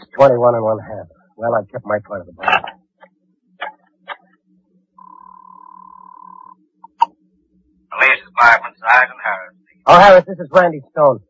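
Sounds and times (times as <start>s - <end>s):
speech: 0.2s - 2.8s, 8.0s - 11.2s
telephone time signal tone: 5.0s - 7.0s.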